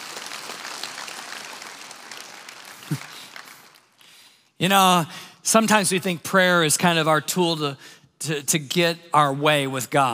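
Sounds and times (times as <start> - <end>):
audience applause: 0.0 - 4.0
speech: 2.9 - 3.2, 4.6 - 10.1.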